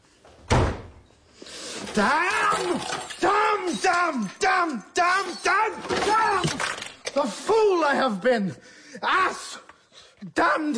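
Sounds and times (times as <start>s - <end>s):
preparation room door shutting with a thump and rattle: 0.5s - 1.0s
speech: 2.0s - 9.6s, 10.2s - 10.7s.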